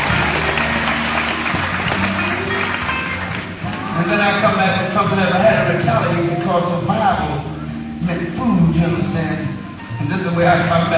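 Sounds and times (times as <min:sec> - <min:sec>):
crowd applauding: 0:00.0 - 0:06.1
faint murmuring voices: 0:00.0 - 0:10.9
speech: 0:04.7 - 0:10.9.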